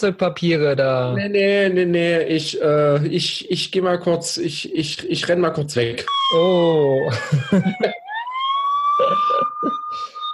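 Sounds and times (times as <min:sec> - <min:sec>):
speech: 0:00.0 - 0:08.0
police car siren wailing: 0:06.0 - 0:10.3
laughter: 0:06.7 - 0:10.3.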